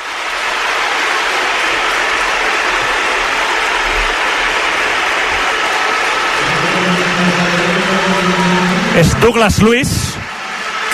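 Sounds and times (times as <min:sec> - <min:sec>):
Bernabéu stadium crowd ovation for substituted player Vinícius: 0:00.0 - 0:10.9
speech: 0:09.0 - 0:10.1.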